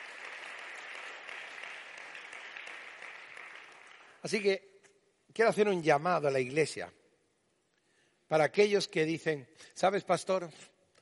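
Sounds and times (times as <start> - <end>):
audience applause: 0.0 - 4.4
speech: 4.2 - 4.7, 5.4 - 7.0, 8.3 - 10.7.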